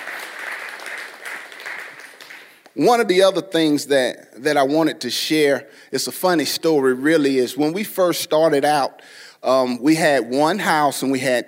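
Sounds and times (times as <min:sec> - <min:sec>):
audience applause: 0:00.0 - 0:02.6
speech: 0:02.8 - 0:11.4.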